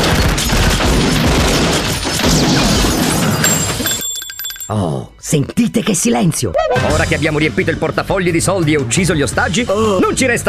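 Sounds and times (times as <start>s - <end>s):
sustained burst of gunfire in a shootout: 0.0s - 3.1s
speech: 4.7s - 10.4s.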